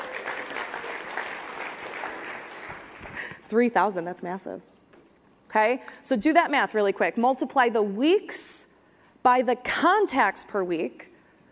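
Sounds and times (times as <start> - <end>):
audience round of applause: 0.0 - 3.3
speech: 3.5 - 4.7, 5.5 - 11.1.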